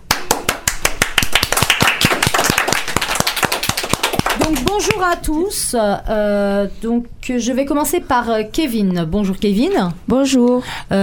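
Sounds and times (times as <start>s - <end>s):
audience applause: 0.1s - 4.8s
speech: 4.5s - 11.0s.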